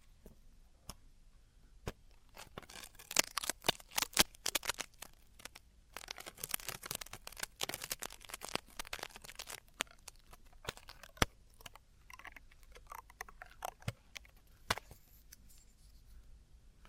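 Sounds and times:
faint low hum: 0.0 - 16.8
Traditional Chinese ear cleaning scratching and crackling clicks: 2.1 - 15.6.

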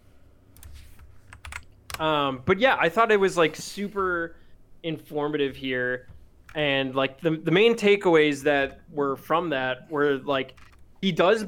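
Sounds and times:
low hum: 0.0 - 11.4
typing a chat message on a computer keyboard: 0.5 - 2.0, 10.5 - 10.9
speech: 2.0 - 11.4.

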